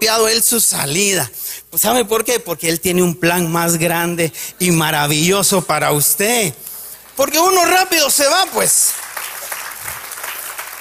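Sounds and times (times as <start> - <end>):
speech: 0.1 - 9.0
audience applauding loudly: 6.9 - 10.7.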